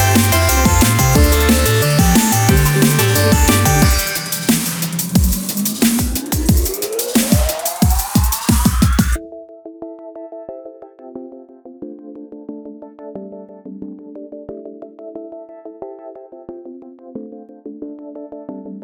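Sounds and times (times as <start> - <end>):
bastardized sine waves: 0.0 - 9.2.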